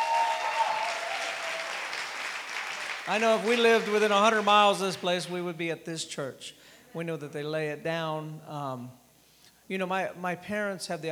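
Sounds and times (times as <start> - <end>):
audience applause: 0.0 - 5.3
speech: 3.1 - 9.0, 9.7 - 11.1.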